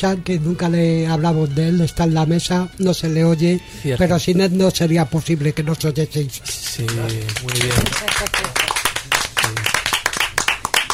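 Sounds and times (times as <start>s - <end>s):
speech: 0.0s - 8.6s
audience applause: 6.8s - 10.9s.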